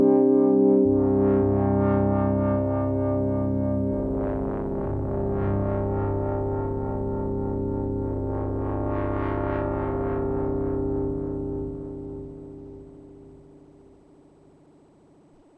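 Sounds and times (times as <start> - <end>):
synth pad: 0.1 - 14.0.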